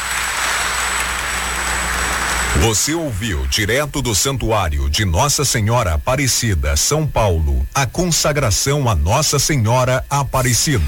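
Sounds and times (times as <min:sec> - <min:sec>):
audience applauding: 0:00.0 - 0:02.9
speech: 0:02.5 - 0:10.8.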